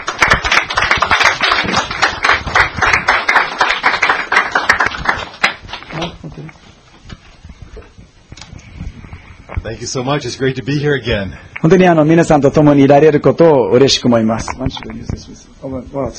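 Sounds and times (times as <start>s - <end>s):
audience clapping to welcome a speaker: 0.0s - 5.9s
speech: 9.7s - 16.1s.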